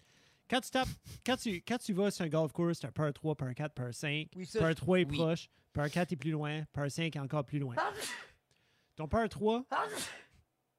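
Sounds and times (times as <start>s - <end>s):
speech: 0.5s - 8.3s, 9.0s - 10.3s
sneeze: 7.8s - 8.4s, 9.7s - 10.4s.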